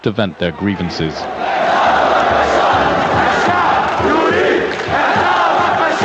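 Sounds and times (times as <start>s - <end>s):
speech: 0.0s - 1.5s
crowd of protesters chanting: 1.2s - 6.0s.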